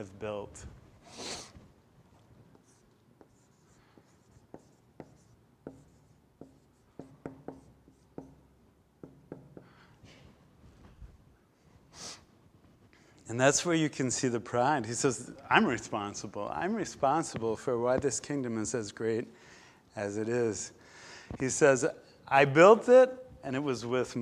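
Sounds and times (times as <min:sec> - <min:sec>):
speech: 0:00.0 - 0:01.4, 0:13.3 - 0:24.2
pen writing down notes: 0:02.5 - 0:08.4.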